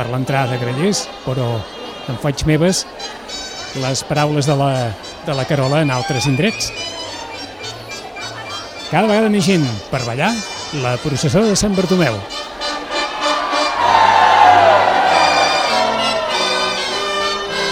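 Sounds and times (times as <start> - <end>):
speech: 0.0 - 6.9, 8.9 - 12.4
large crowd shrieking and cheering: 12.6 - 17.6.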